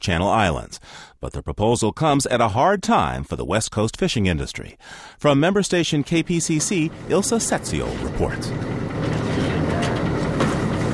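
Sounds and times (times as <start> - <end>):
speech: 0.0 - 8.8
research boat engine idling near shore: 6.5 - 10.9.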